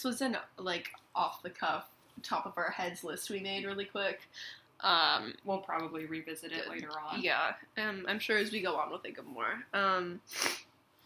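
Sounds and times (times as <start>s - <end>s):
speech: 0.0s - 10.6s
person sniffling from a cold: 10.3s - 10.6s.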